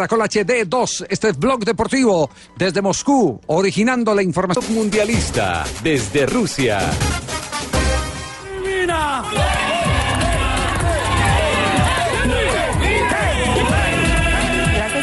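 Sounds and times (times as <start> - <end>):
speech: 0.0 - 7.2
stadium crowd at El Campín cheering Colombia national team players: 8.4 - 15.0.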